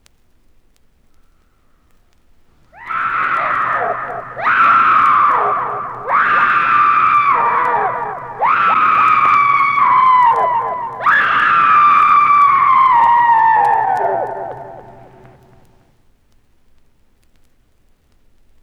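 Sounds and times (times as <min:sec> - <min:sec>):
people screaming: 0:02.8 - 0:15.8.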